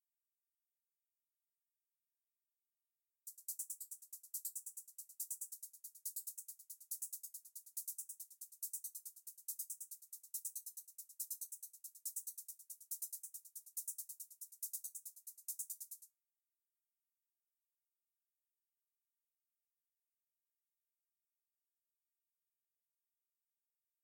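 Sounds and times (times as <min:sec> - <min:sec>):
hi-hat: 0:03.3 - 0:16.1.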